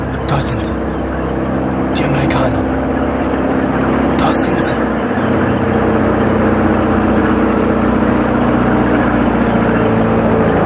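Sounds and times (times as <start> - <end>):
tank engine droning: 0.0 - 10.6
speech: 0.3 - 1.2, 2.0 - 3.0, 4.3 - 6.0.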